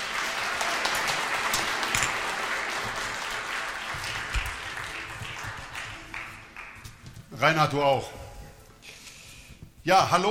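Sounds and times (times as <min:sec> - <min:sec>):
applause: 0:00.0 - 0:07.0
speech: 0:07.4 - 0:08.2, 0:09.8 - 0:10.3.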